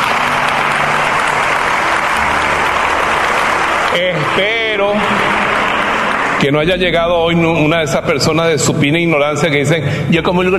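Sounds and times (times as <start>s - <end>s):
audience applause: 0.0s - 8.4s
speech: 3.9s - 5.0s, 6.4s - 10.5s.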